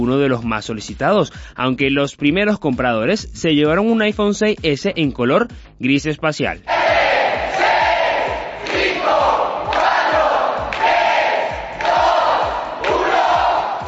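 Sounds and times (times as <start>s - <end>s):
speech: 0.0s - 6.7s
store workers cheering and applauding: 6.7s - 13.8s.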